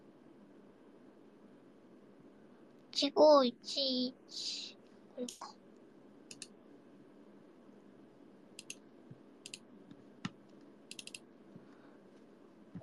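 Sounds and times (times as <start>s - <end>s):
speech: 3.0s - 5.6s
mouse double-clicking an executable file: 6.3s - 6.5s, 8.6s - 8.8s, 9.4s - 11.2s.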